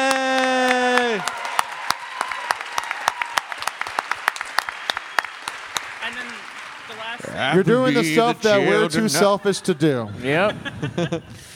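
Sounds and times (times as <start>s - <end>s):
audience clapping: 0.0s - 8.6s
laughter: 7.2s - 11.5s
speech: 7.4s - 11.5s.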